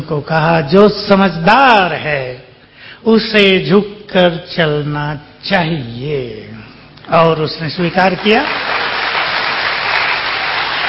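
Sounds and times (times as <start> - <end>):
speech: 0.1 - 2.4, 3.0 - 8.8
audience clapping at a Hindi-language talk: 7.9 - 10.8.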